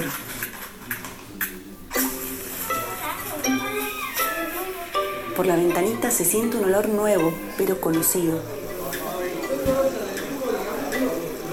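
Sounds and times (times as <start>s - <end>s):
frying food sizzling and bubbling: 0.0s - 11.5s
speech: 5.4s - 8.6s.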